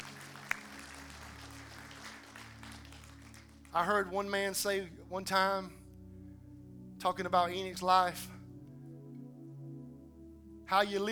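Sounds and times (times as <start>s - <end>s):
audience clapping hands: 0.0s - 4.2s
low constant hum: 0.0s - 11.1s
speech: 3.7s - 5.8s, 7.0s - 8.4s, 10.7s - 11.1s.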